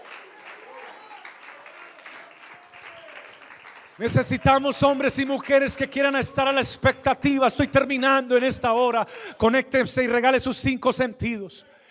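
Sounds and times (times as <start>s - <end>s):
audience applauding: 0.0s - 6.6s
speech: 4.0s - 11.8s.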